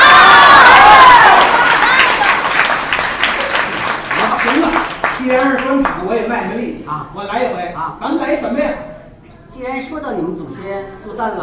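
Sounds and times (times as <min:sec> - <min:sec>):
thunderous applause and cheering from audience: 0:00.0 - 0:05.8.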